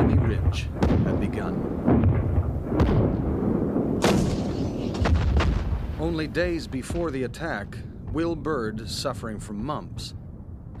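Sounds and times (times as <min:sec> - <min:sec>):
artillery and mortar barrage: 0:00.0 - 0:08.6
speech: 0:00.5 - 0:00.9, 0:06.1 - 0:10.2.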